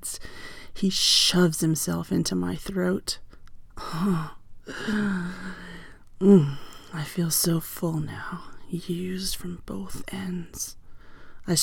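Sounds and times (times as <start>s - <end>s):
speech: 0.8s - 3.2s, 3.9s - 5.6s, 6.2s - 10.8s, 11.4s - 11.6s
woman gasping: 3.8s - 6.9s.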